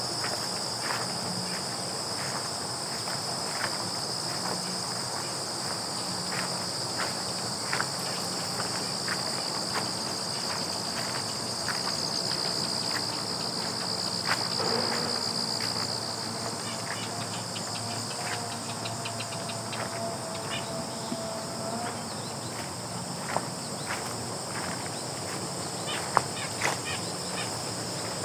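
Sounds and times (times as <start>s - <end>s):
grasshoppers shimmering: 0.0s - 28.2s
footsteps on gravel: 0.2s - 17.1s, 22.5s - 28.2s.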